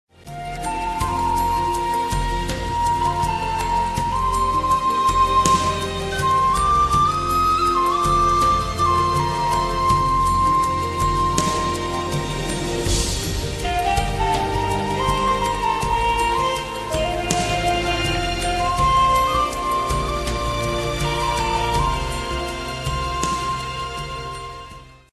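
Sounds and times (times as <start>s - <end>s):
Samsung nature sounds: 0.2s - 25.0s.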